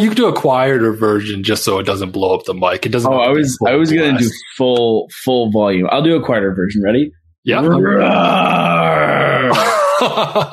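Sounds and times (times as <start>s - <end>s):
speech: 0.0s - 10.5s
person imitating a roar: 7.6s - 9.7s
laughter: 9.4s - 10.5s.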